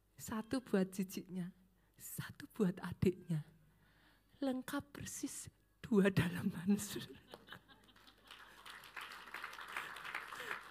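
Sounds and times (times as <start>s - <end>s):
speech: 0.2s - 3.5s, 4.4s - 7.4s
audience clapping: 7.3s - 10.7s.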